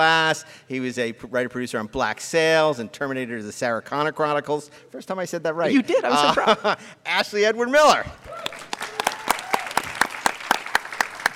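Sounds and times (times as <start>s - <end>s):
speech: 0.0s - 8.7s
audience applause: 8.3s - 11.3s.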